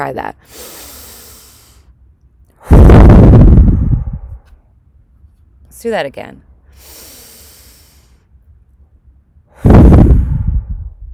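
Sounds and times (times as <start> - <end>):
speech: 0.0 - 0.9, 5.8 - 7.0
deep breath: 0.4 - 1.9, 2.6 - 4.6, 6.7 - 8.3, 9.5 - 11.0.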